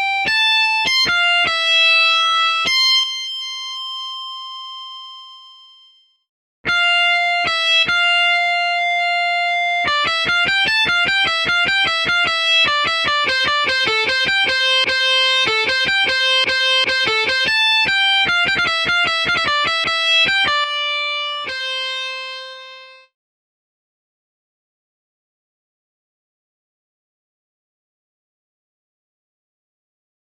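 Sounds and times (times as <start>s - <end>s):
guitar solo in C major: 0.0s - 3.2s, 6.7s - 23.1s.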